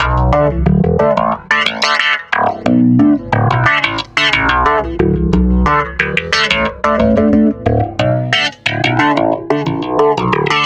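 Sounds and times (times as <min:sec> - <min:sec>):
stick bass loop: 0:00.0 - 0:10.6.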